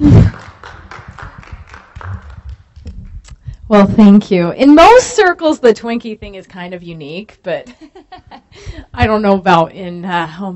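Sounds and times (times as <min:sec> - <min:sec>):
audience clapping: 0:00.0 - 0:03.3
speech: 0:03.7 - 0:10.5.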